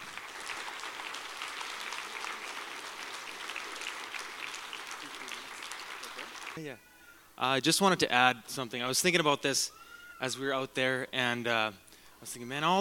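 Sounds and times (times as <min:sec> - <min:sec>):
audience applause: 0:00.0 - 0:06.6
speech: 0:06.6 - 0:12.7.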